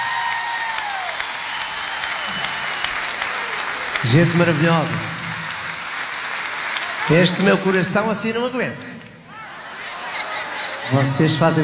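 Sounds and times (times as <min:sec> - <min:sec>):
audience applause: 0:00.0 - 0:11.6
speech: 0:04.0 - 0:05.2, 0:07.1 - 0:09.0, 0:10.9 - 0:11.6
laughter: 0:09.2 - 0:11.6.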